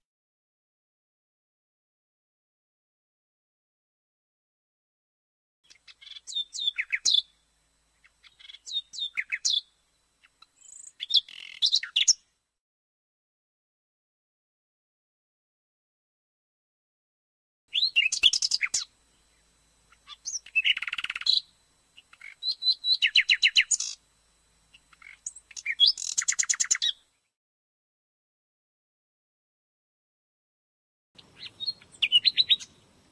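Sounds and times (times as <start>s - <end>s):
nightingale singing: 5.7s - 12.3s, 17.7s - 24.0s, 24.7s - 27.2s, 31.2s - 33.0s.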